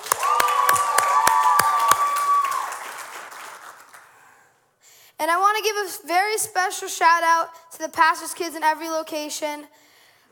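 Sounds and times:
cheer: 0.0s - 4.1s
audience clapping: 0.0s - 4.5s
speech: 5.8s - 9.8s.

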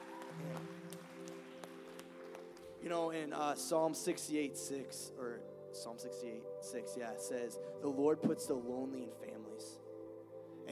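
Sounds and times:
audience applause: 0.0s - 2.8s
speech: 0.4s - 0.7s, 2.8s - 9.8s.

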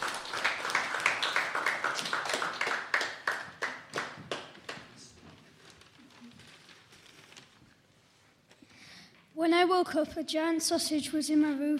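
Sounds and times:
small group clapping: 0.0s - 6.0s
speech: 9.4s - 11.7s.

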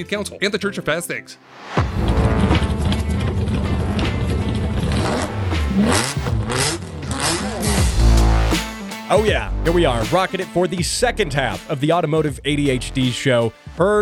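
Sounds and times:
speech: 0.0s - 2.8s, 5.8s - 6.8s, 9.1s - 14.0s
TVR Cerbera engine revving: 1.8s - 9.1s.

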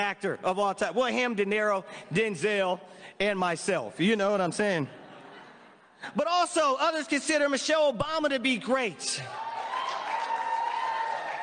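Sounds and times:
speech: 0.0s - 5.0s, 6.0s - 9.5s
laughter: 4.6s - 6.1s
audience clapping: 9.3s - 11.4s.

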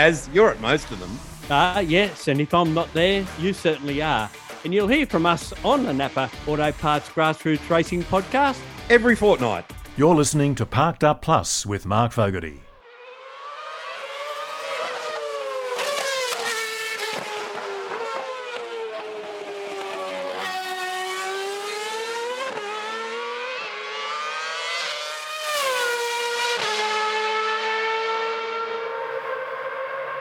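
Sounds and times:
speech: 0.0s - 12.6s
Formula One race car engine howling: 12.9s - 30.1s.

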